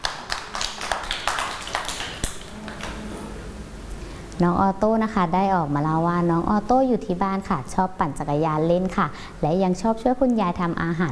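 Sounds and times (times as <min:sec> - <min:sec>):
children clapping: 0:00.0 - 0:03.1
speech: 0:04.4 - 0:11.1.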